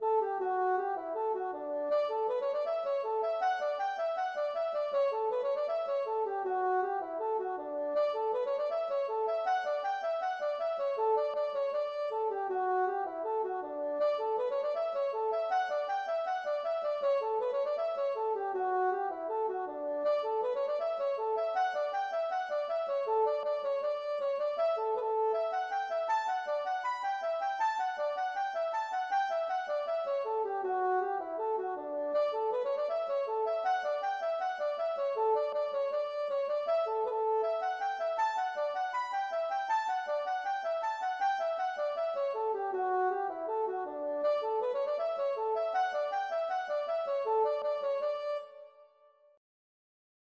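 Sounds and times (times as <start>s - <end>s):
hornpipe tune: 0.1s - 48.8s.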